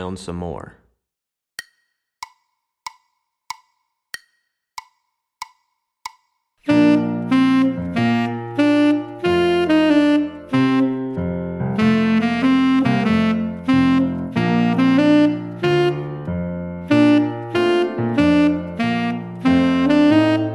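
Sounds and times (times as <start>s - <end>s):
tenor saxophone etude: 6.7s - 11.2s, 11.7s - 16.1s, 16.9s - 20.5s.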